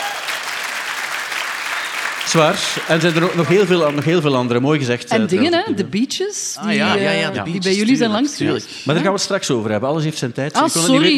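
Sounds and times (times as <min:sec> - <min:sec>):
audience applause: 0:00.0 - 0:04.8
speech: 0:02.3 - 0:11.1.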